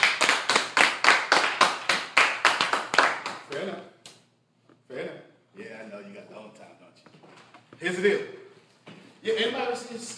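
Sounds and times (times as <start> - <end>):
audience clapping: 0.0 - 3.7
speech: 3.5 - 3.9, 7.8 - 8.4, 9.2 - 10.1.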